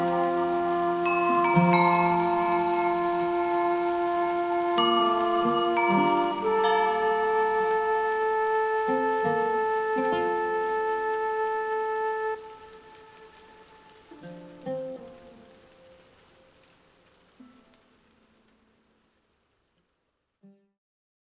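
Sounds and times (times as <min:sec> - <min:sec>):
Turkish flute: 0:00.0 - 0:16.6
summer forest ambience: 0:00.0 - 0:20.2.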